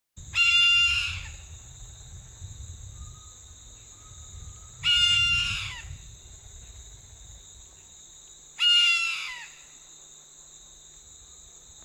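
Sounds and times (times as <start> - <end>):
red-throated caracara giving coarse screeching calls: 0.4 - 1.4, 8.6 - 9.6.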